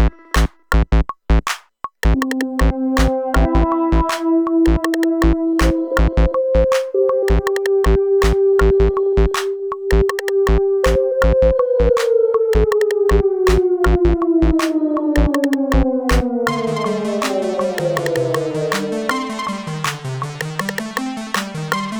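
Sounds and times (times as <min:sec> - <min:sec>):
backing track music: 0:00.0 - 0:21.9.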